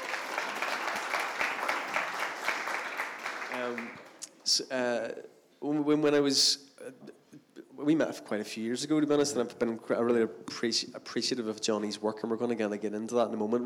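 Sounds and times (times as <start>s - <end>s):
audience applause welcoming a guest to a morning gathering: 0.0s - 4.2s
speech: 3.6s - 7.2s, 7.8s - 13.6s.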